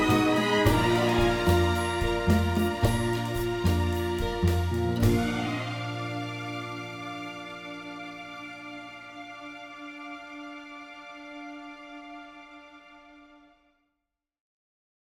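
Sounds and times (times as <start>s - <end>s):
rumba music: 0.0s - 8.9s.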